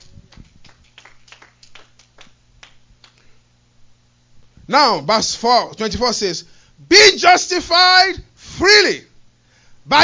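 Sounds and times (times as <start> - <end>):
audience hand clapping: 0.0 - 3.2
speech: 4.7 - 9.1, 9.9 - 10.0.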